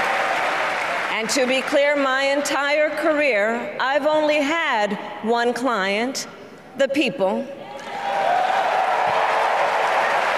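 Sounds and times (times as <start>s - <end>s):
convention crowd applauding and cheering: 0.0s - 1.9s, 7.8s - 10.3s
speech: 1.2s - 7.6s.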